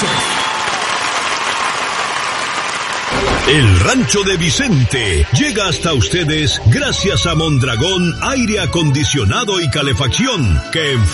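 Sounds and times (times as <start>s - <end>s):
audience applause at a live ranchera-style music show: 0.0s - 8.0s
speech: 3.4s - 11.1s.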